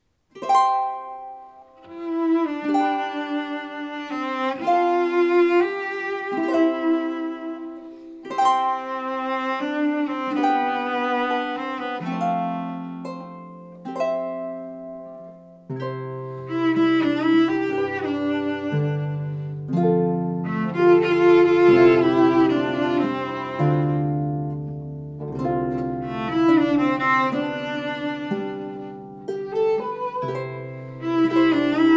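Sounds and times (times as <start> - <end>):
harp: 0.3 - 31.9.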